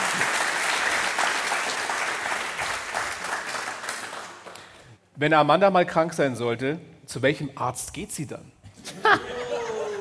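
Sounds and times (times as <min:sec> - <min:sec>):
audience applause: 0:00.0 - 0:04.8
speech: 0:05.2 - 0:09.4
laughter: 0:08.8 - 0:09.9.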